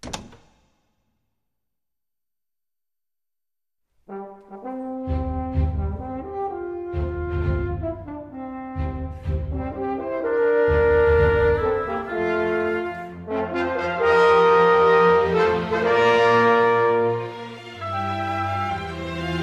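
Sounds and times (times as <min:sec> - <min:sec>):
bedroom door quietly shut and locked: 0:00.0 - 0:00.7
sustained tonal music: 0:04.5 - 0:19.4.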